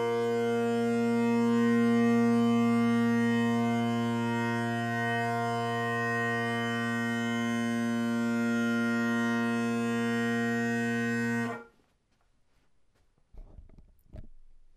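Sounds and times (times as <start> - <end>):
1950s African blackwood bagpipe drone reeds: 0.0 - 11.7.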